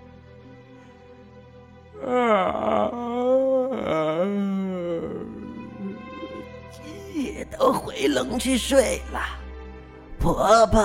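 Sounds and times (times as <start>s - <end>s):
speech: 2.0s - 2.8s, 7.6s - 9.4s, 10.2s - 10.8s
storyteller imitating a wolf's yawn: 2.0s - 7.4s.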